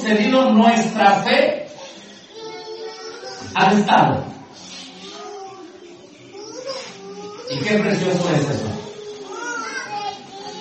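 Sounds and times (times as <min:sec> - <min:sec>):
speech: 0:00.1 - 0:01.6, 0:03.4 - 0:04.4, 0:07.5 - 0:08.8
children making noise: 0:01.7 - 0:10.5
children crying: 0:01.8 - 0:03.6, 0:04.9 - 0:10.5.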